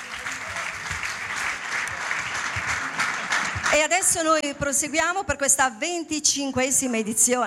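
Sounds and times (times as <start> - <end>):
audience applause: 0.0 - 4.1
speech: 3.7 - 7.4.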